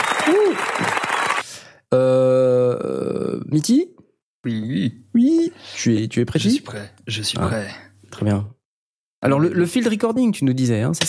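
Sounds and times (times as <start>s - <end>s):
applause: 0.0s - 1.6s
speech: 1.9s - 8.6s, 9.2s - 11.0s.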